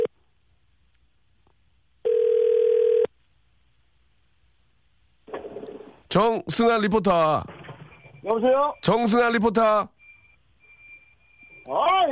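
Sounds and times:
telephone ringback tone while calling: 2.0s - 3.1s
speech: 6.1s - 7.5s, 8.2s - 9.9s.

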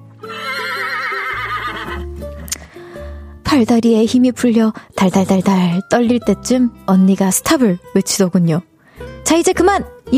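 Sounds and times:
person imitating a horse neigh: 0.2s - 2.0s
speech: 3.5s - 10.1s.

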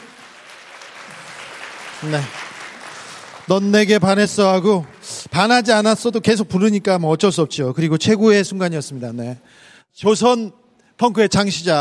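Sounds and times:
crowd applauding: 0.0s - 6.1s
speech: 2.0s - 2.4s, 3.5s - 11.7s.

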